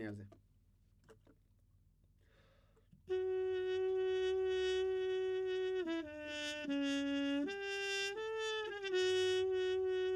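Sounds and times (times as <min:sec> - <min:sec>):
trumpet: 0:03.1 - 0:10.1.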